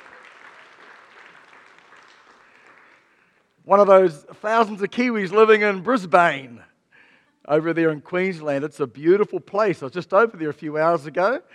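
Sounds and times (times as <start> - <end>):
audience applause welcoming a guest on stage: 0.0 - 3.5
speech: 3.7 - 6.7, 7.4 - 11.5.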